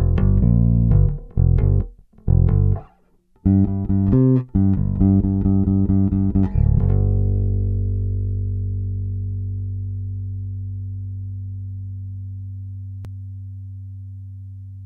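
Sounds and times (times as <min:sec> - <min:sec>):
bass guitar neck recorded by direct input: 0:00.0 - 0:14.8.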